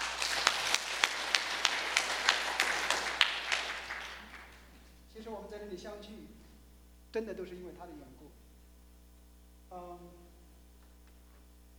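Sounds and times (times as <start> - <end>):
audience applause: 0.0 - 4.7
speech: 5.3 - 6.4, 7.1 - 8.4, 9.7 - 10.2.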